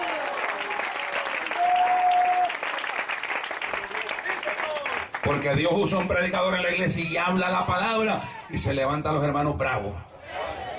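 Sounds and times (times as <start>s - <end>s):
audience applauding: 0.0s - 7.2s
speech: 5.3s - 10.1s.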